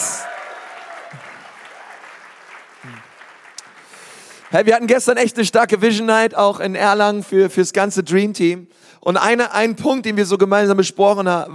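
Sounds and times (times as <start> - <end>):
audience applause: 0.0 - 4.9
speech: 4.5 - 11.5.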